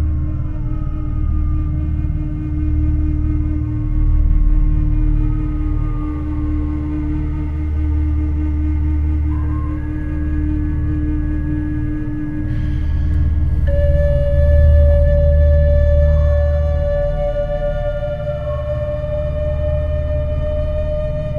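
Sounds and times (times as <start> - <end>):
Native American flute playing: 0.1 - 21.3.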